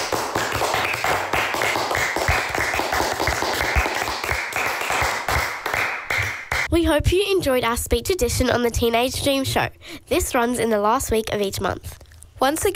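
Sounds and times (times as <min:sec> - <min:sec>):
applause: 0:00.0 - 0:06.7
speech: 0:06.7 - 0:12.7.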